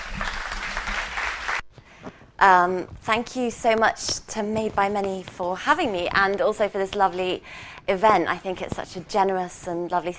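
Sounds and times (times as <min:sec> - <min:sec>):
audience applause welcoming a speaker at an event: 0:00.0 - 0:01.6
speech: 0:02.4 - 0:10.1.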